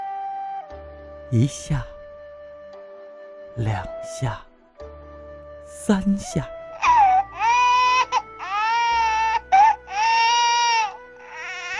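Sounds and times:
speech: 1.3s - 1.9s, 3.6s - 4.5s, 5.7s - 6.6s
child bursting into crying: 6.8s - 11.7s.

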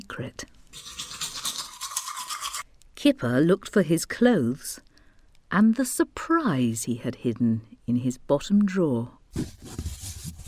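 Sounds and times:
speech: 0.1s - 1.0s, 3.0s - 4.9s, 5.5s - 9.8s
brushing teeth with a toothbrush: 0.7s - 2.6s.

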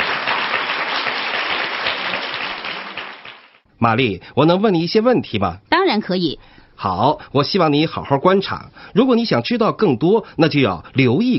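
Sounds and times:
audience applause: 0.0s - 3.6s
speech: 3.8s - 11.3s.

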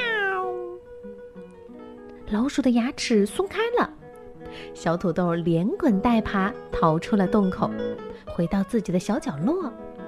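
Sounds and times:
cat meowing: 0.0s - 0.8s
speech: 2.3s - 4.0s, 4.6s - 9.8s.

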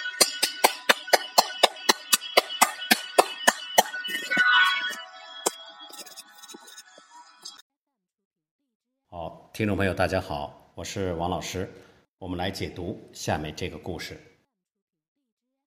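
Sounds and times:
applause: 0.2s - 4.3s
speech: 9.6s - 14.3s.

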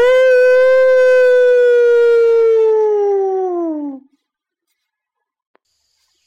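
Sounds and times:
voice imitating a wolf howl: 0.0s - 4.1s.

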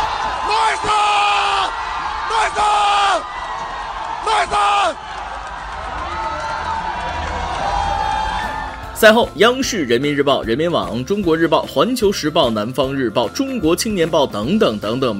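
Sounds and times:
crowd cheering in unison: 0.0s - 11.5s
speech: 9.0s - 15.1s.

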